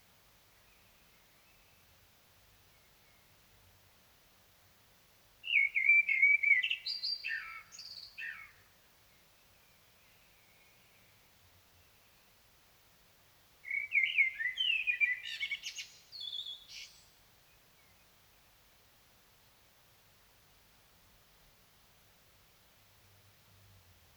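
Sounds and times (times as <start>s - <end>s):
Common blackbird singing: 5.4s - 8.6s, 13.6s - 17.1s.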